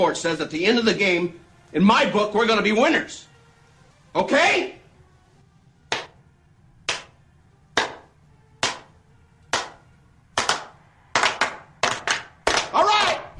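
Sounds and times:
speech: 0.0s - 3.3s, 4.1s - 4.8s
crowd clapping in rhythm: 5.9s - 6.2s, 6.9s - 7.2s, 7.8s - 8.9s, 9.5s - 9.8s, 10.4s - 13.2s.

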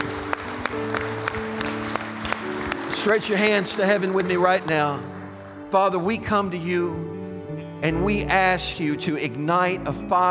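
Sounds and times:
audience hand clapping: 0.0s - 5.4s
speech: 3.0s - 7.2s, 7.8s - 10.2s.

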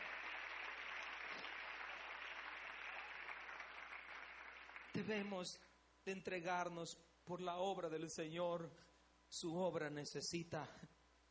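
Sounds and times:
audience applause: 0.0s - 5.0s
speech: 5.0s - 11.0s.

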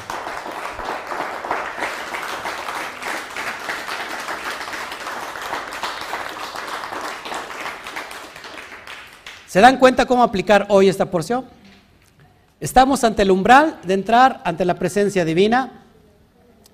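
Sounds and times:
audience applause: 0.0s - 9.5s
speech: 9.5s - 11.6s, 12.6s - 15.8s.

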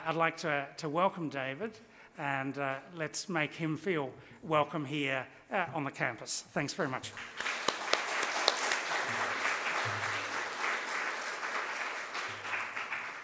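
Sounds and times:
speech: 0.0s - 7.6s
audience applause: 7.2s - 13.2s.

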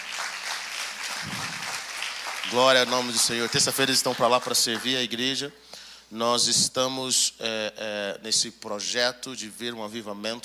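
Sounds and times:
audience applause: 0.0s - 5.0s
speech: 2.5s - 10.4s.

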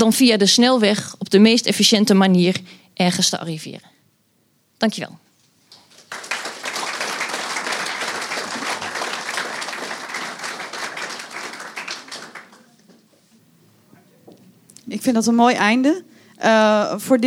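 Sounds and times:
speech: 0.0s - 3.9s, 4.8s - 5.2s, 14.9s - 17.2s
audience applause: 5.7s - 13.1s.

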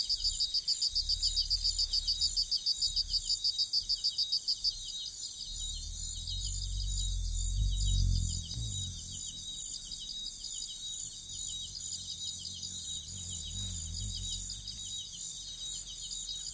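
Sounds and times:
rainforest bugs droning in the Congo Basin: 0.0s - 16.5s
low rumbles: 5.3s - 16.1s.

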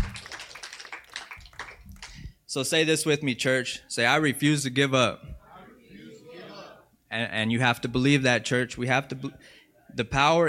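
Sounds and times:
audience hand clapping: 0.0s - 2.3s
speech: 2.5s - 5.3s, 7.1s - 10.4s.

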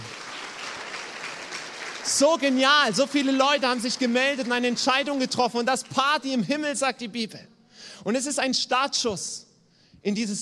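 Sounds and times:
audience applause: 0.0s - 5.9s
speech: 2.1s - 10.4s.

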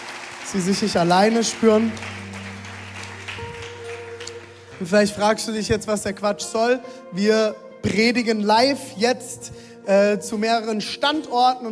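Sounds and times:
audience clapping: 0.0s - 5.3s
speech: 0.5s - 2.2s, 4.8s - 11.7s.

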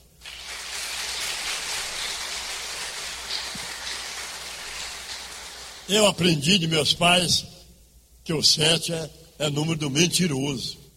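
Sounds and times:
audience applause: 0.2s - 5.9s
speech: 5.9s - 7.6s, 8.3s - 10.8s.

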